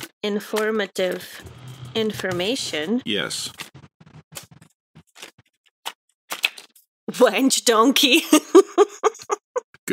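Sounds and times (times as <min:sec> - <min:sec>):
speech: 0:00.2 - 0:03.6, 0:07.2 - 0:09.3
pages turning: 0:03.5 - 0:06.8
laughter: 0:08.2 - 0:09.6.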